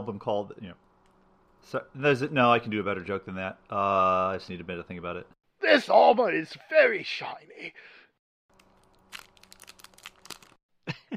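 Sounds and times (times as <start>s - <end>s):
speech: 0.0s - 0.8s, 1.6s - 8.0s
Ghirardelli chocolate wrapper crinkling while being unwrapped: 8.5s - 10.6s.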